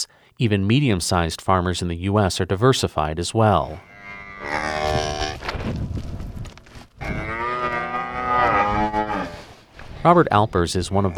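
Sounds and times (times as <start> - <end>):
speech: 0.4 - 4.7, 10.0 - 11.1
cattle mooing: 3.8 - 5.5, 7.0 - 9.6.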